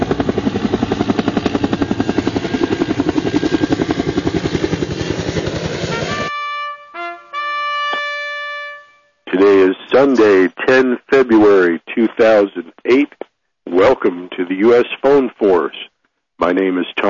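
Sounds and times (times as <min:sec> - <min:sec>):
aircraft taking off: 0:00.0 - 0:11.4
buzzy harmonic tones: 0:06.2 - 0:10.5
speech: 0:10.0 - 0:17.0.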